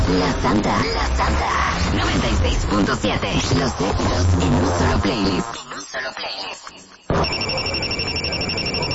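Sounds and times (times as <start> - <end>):
speech: 0.1 - 7.9
telephone bell ringing: 7.2 - 8.9.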